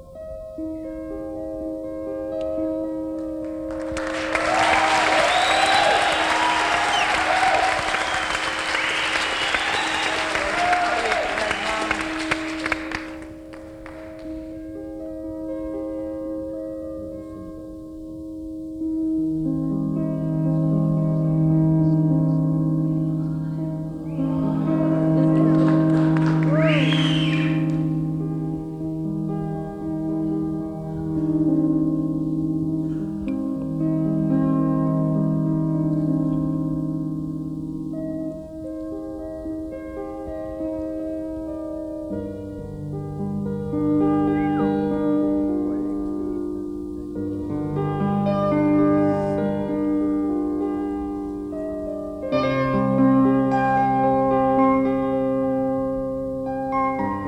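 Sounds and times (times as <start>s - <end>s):
piano improvisation: 0.0s - 57.2s
laughter: 5.0s - 13.2s, 24.1s - 27.8s.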